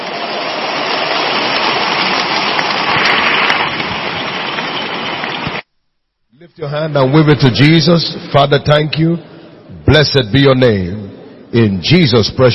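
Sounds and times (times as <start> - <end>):
audience applause: 0.0 - 5.6
speech: 6.6 - 12.5.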